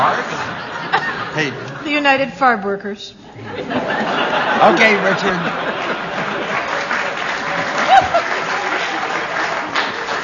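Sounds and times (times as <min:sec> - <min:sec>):
laughter: 0:00.0 - 0:01.9, 0:03.3 - 0:10.2
speech: 0:01.4 - 0:06.2
studio audience applauding: 0:04.6 - 0:10.2.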